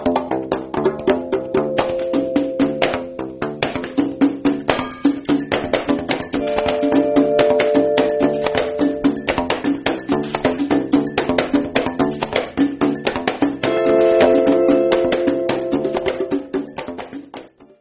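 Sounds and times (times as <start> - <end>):
donkey beat: 0.2 - 17.7.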